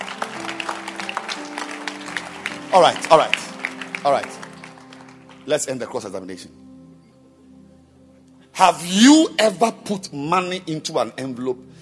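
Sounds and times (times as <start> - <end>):
audience clapping hands: 0.0 - 5.7
speech: 2.7 - 4.4, 5.5 - 6.6, 8.6 - 11.8.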